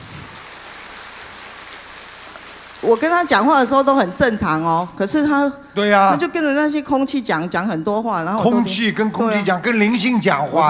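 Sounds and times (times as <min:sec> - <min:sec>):
applause: 0:00.0 - 0:03.2
speech: 0:02.8 - 0:10.6.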